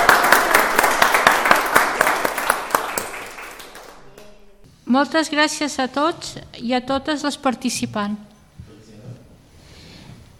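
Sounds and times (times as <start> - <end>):
crowd applause: 0.0 - 4.4
speech: 4.9 - 8.3.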